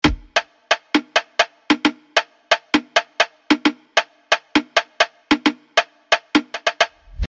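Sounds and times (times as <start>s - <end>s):
drum: 0.0s - 7.3s.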